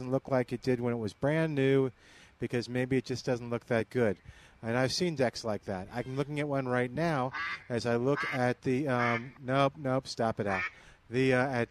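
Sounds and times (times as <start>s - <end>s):
speech: 0.0s - 11.6s
duck quacking: 7.3s - 9.4s, 10.5s - 10.8s.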